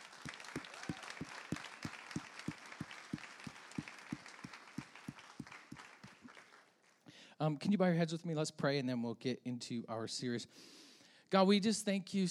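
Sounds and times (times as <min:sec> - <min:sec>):
audience clapping: 0:00.0 - 0:07.1
speech: 0:07.4 - 0:12.3.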